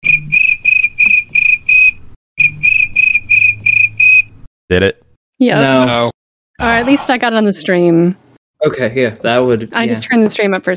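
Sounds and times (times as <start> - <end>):
cricket chirping sound effect: 0.2 - 4.3
speech: 4.7 - 10.7.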